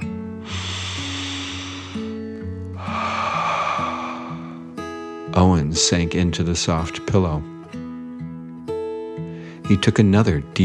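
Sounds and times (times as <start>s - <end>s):
soft music with steady low notes: 0.0s - 10.6s
deep slow breath in and out: 0.3s - 5.3s
speech: 5.4s - 7.5s, 9.7s - 10.6s.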